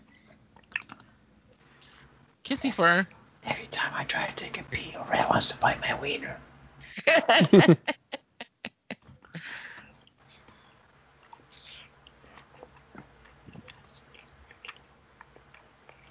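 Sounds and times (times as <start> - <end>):
person eating: 0.6 - 1.1, 11.2 - 16.1
speech: 2.5 - 3.2, 3.8 - 8.0
laughter: 6.9 - 9.0.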